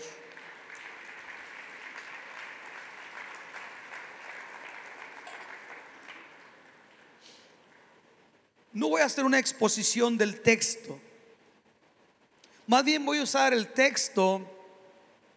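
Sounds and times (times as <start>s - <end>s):
audience applause: 0.0s - 7.2s
speech: 8.8s - 11.1s, 12.7s - 14.6s.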